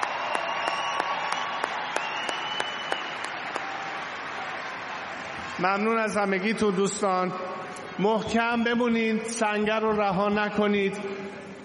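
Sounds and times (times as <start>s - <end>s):
audience applauding performers after an evening show: 0.0s - 6.5s
speech: 5.6s - 11.2s.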